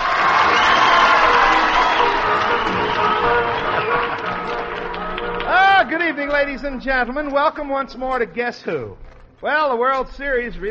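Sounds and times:
studio audience at a quiz show cheering and clapping: 0.0s - 7.4s
speech: 5.9s - 10.6s.

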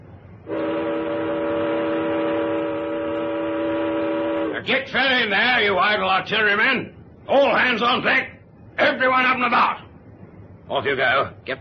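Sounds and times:
ship siren sounding: 0.4s - 4.7s
speech: 4.7s - 9.8s, 10.7s - 11.6s.

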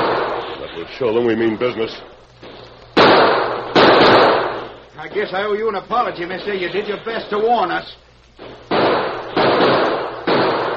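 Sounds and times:
gunshot: 0.0s - 0.6s, 2.4s - 5.3s, 8.4s - 10.7s
speech: 0.8s - 2.1s, 5.0s - 8.0s.

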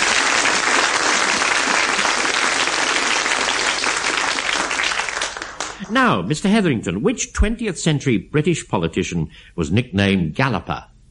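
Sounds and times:
studio audience applause: 0.0s - 6.3s
speech: 5.9s - 10.9s.

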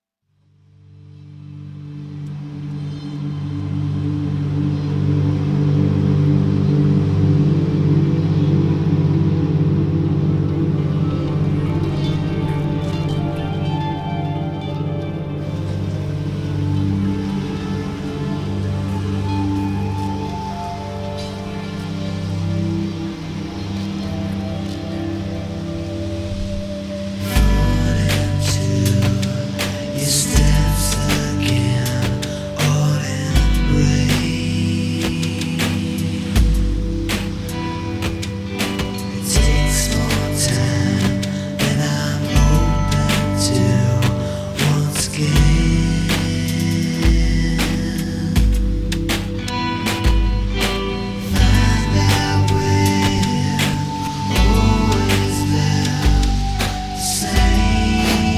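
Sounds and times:
soft rock music: 1.0s - 58.3s.

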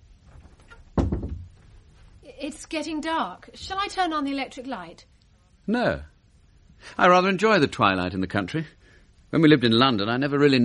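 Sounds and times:
door being shut: 0.5s - 1.6s
speech: 2.4s - 5.1s, 5.7s - 6.1s, 6.8s - 10.6s.

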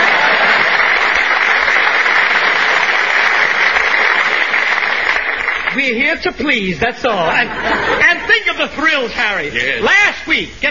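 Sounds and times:
laughter: 0.0s - 1.0s, 7.2s - 8.6s
audience applause: 0.0s - 5.9s
speech: 6.2s - 10.7s.

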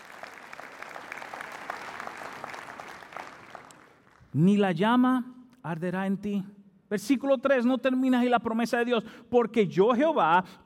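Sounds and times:
audience applause: 0.0s - 4.3s
speech: 4.4s - 10.6s.

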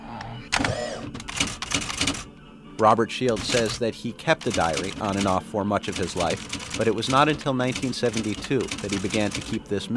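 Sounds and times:
manual typewriter typing: 0.6s - 2.3s, 3.3s - 3.8s, 4.4s - 9.9s
speech: 2.8s - 9.9s.

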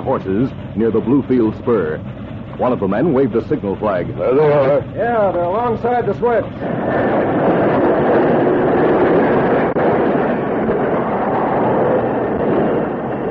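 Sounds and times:
steam locomotive braking to a halt: 0.0s - 13.2s
speech: 0.1s - 7.8s.

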